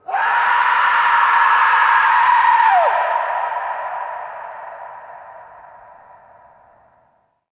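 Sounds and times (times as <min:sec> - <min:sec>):
person screaming: 0:00.0 - 0:05.5.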